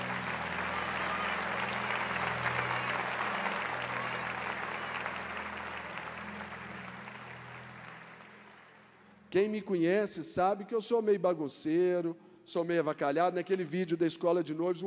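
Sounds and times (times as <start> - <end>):
audience applause: 0.0 - 9.1
speech: 9.3 - 14.8.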